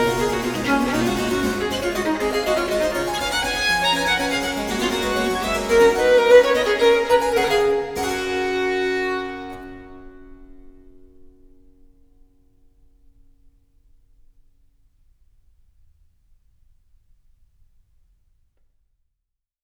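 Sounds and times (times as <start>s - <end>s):
violin and harpsichord sonata allegro: 0.0s - 9.7s.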